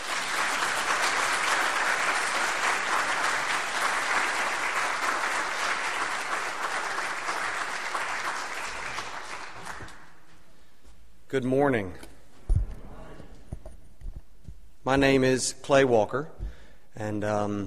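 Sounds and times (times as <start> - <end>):
audience applause welcoming a speaker at a Martin Luther King Day gathering: 0.0 - 10.2
speech: 11.4 - 12.1, 14.9 - 16.4, 17.0 - 17.6.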